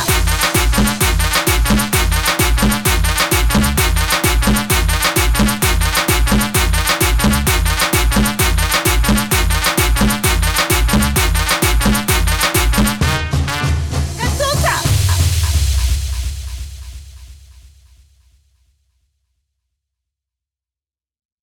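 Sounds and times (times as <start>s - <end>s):
130 bpm music track: 0.0s - 17.0s.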